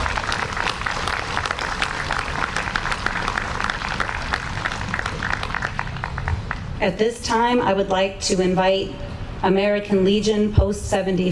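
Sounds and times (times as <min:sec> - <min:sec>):
audience applause: 0:00.0 - 0:06.8
speech: 0:06.8 - 0:11.3.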